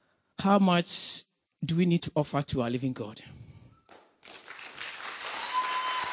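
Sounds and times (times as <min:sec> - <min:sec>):
speech: 0:00.4 - 0:03.4
audience clapping: 0:03.9 - 0:06.1.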